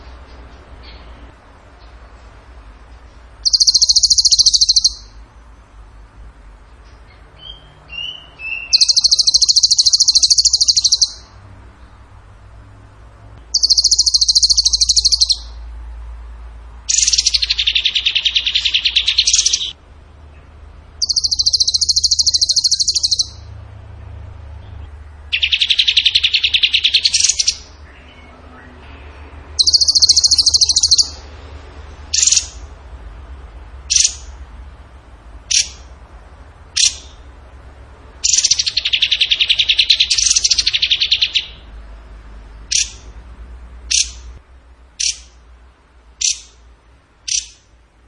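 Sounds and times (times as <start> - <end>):
bird trilling: 3.4 - 5.2, 7.1 - 11.3, 13.5 - 15.6, 16.9 - 19.8, 21.0 - 23.5, 25.3 - 31.3, 32.1 - 32.7, 33.9 - 34.3, 35.4 - 35.9, 36.8 - 37.3, 38.2 - 41.7, 42.6 - 43.1, 43.9 - 44.3, 45.0 - 45.4, 46.2 - 46.6, 47.2 - 47.7.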